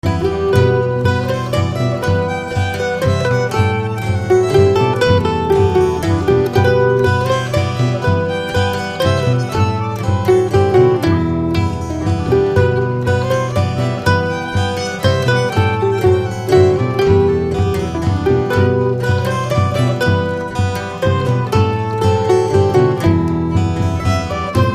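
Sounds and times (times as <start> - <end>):
mazurka: 0.0 - 24.7.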